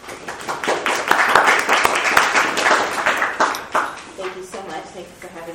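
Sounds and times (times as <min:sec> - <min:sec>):
audience applause welcoming a speaker to an evening talk on the Book of Esther: 0:00.0 - 0:04.2.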